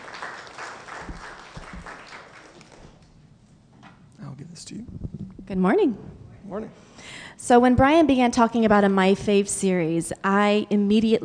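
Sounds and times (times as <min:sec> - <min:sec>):
audience applause welcoming a speaker: 0:00.0 - 0:03.0
speech: 0:04.6 - 0:06.8, 0:07.5 - 0:11.2.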